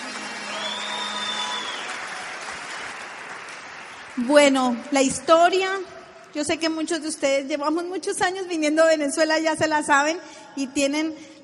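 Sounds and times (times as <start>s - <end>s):
crowd applause: 0.0s - 4.7s
speech: 4.2s - 11.4s.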